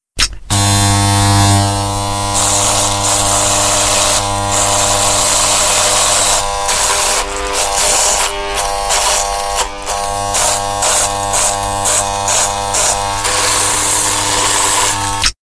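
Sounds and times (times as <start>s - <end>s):
shaving: 0.5s - 15.4s.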